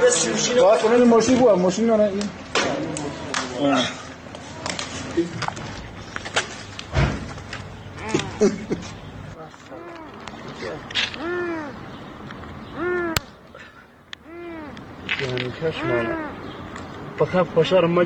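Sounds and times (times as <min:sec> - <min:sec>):
speech: 0:00.1 - 0:02.8, 0:03.6 - 0:04.0, 0:05.2 - 0:05.5, 0:08.4 - 0:09.0, 0:15.6 - 0:16.3, 0:17.2 - 0:18.0
trapped cat meowing: 0:07.8 - 0:10.2, 0:11.1 - 0:12.0, 0:12.7 - 0:13.3, 0:14.2 - 0:14.9, 0:15.6 - 0:16.5.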